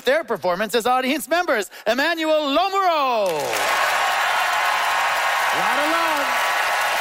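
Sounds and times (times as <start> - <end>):
speech: 0.0 - 4.0, 5.6 - 6.5
audience applause: 3.2 - 7.0
person whooping: 5.5 - 6.4.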